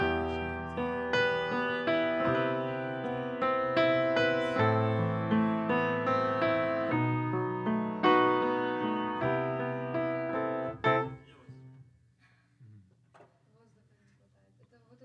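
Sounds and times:
piano: 0.0s - 11.4s.

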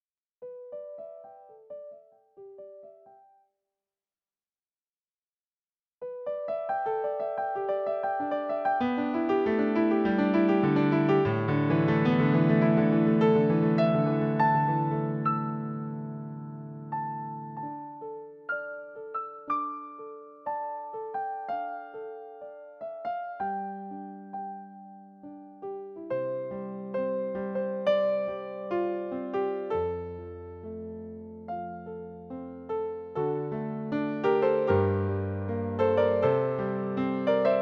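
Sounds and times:
piano: 0.4s - 3.5s, 6.0s - 37.5s.

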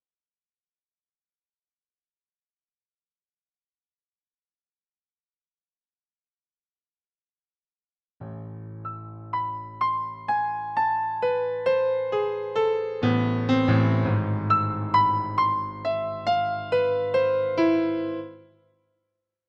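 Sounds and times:
piano: 8.2s - 18.7s.

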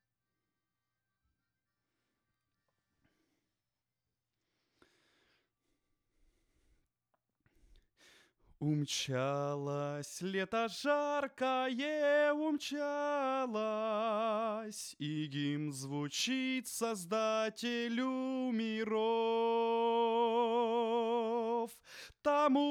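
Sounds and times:
vocals: 8.5s - 22.7s.

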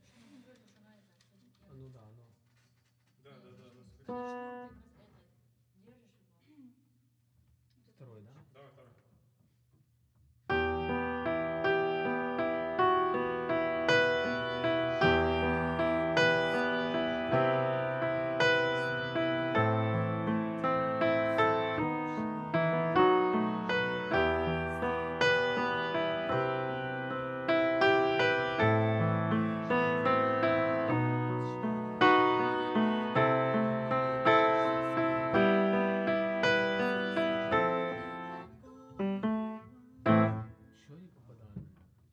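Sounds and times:
piano: 4.0s - 5.0s, 10.5s - 40.7s.

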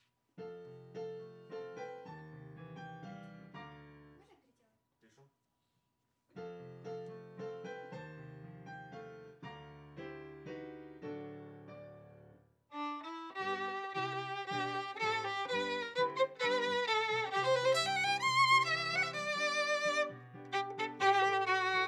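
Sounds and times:
viola playing D: 12.7s - 21.8s.

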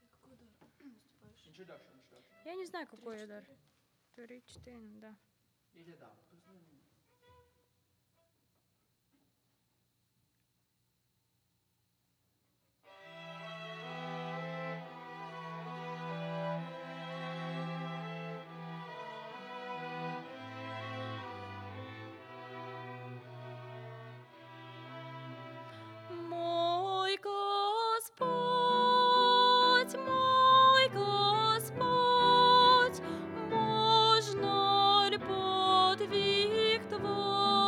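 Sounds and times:
vocals: 0.0s - 1.1s, 26.0s - 37.6s.

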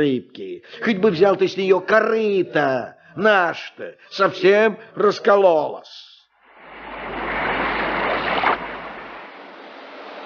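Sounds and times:
speech: 0.0s - 6.1s
slightly rough sea waves: 6.4s - 10.2s.

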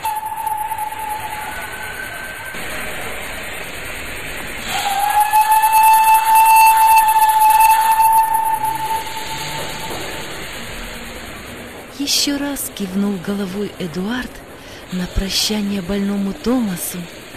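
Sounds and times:
sustained high whistle-like tone: 0.0s - 11.9s
steam locomotive releasing steam: 0.0s - 17.3s
speech: 12.6s - 17.2s.

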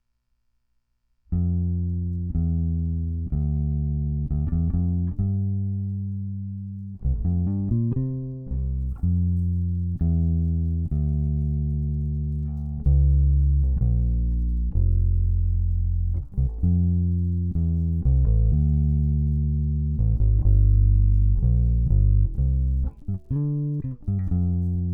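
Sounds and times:
bass: 1.0s - 24.9s.

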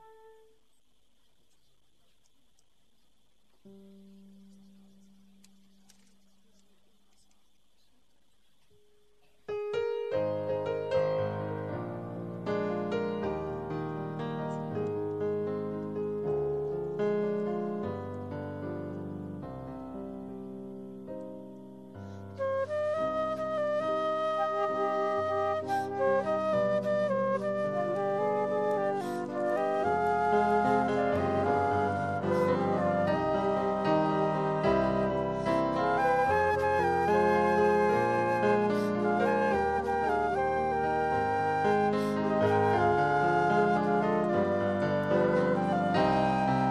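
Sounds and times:
music: 0.0s - 0.6s, 3.6s - 6.2s, 8.8s - 46.6s.

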